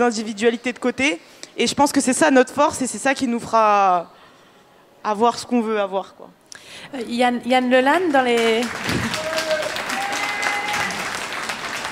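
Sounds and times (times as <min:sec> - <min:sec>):
speech: 0:00.0 - 0:04.2, 0:05.0 - 0:09.0
audience applauding: 0:08.3 - 0:11.9.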